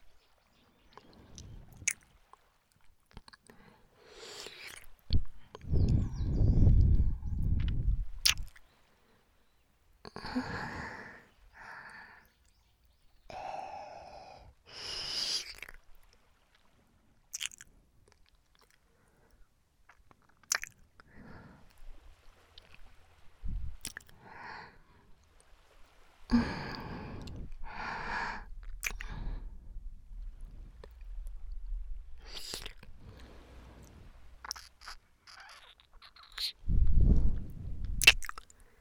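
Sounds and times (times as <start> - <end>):
ASMR ear licking sounds: 0.9 - 2.1, 4.2 - 8.7, 15.1 - 15.8, 17.3 - 18.9, 19.9 - 21.1, 23.8 - 24.2, 26.3 - 29.5, 32.2 - 38.6.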